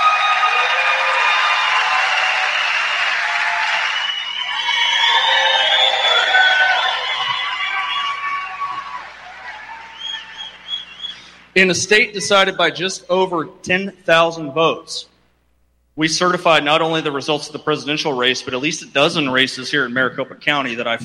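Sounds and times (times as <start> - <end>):
audience applause: 0.0 - 11.1
speech: 11.6 - 15.1, 16.0 - 21.0.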